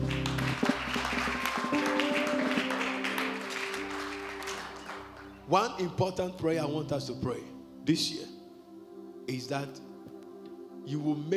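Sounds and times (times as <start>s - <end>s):
audience clapping: 0.0s - 5.5s
speech: 5.5s - 8.3s, 9.3s - 9.9s, 10.9s - 11.3s.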